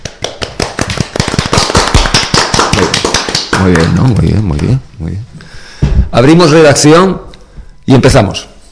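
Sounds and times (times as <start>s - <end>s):
applause sound effect: 0.0s - 4.0s
speech: 3.6s - 5.3s, 6.1s - 7.3s, 7.9s - 8.5s.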